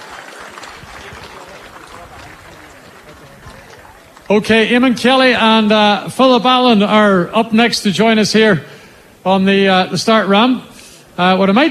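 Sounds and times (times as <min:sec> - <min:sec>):
outdoor crowd applauding: 0:00.0 - 0:04.9
speech: 0:04.3 - 0:11.7.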